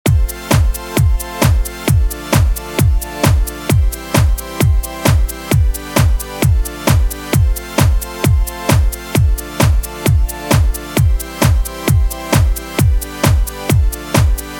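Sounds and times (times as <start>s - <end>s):
sidechained rave loop: 0.0s - 14.5s.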